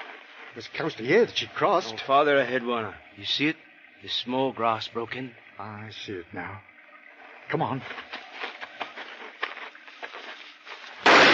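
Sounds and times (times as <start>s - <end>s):
speech: 0.6s - 6.7s, 7.5s - 8.2s
quiet rustling: 7.8s - 11.3s
gunshot from a game hunt: 11.0s - 11.3s.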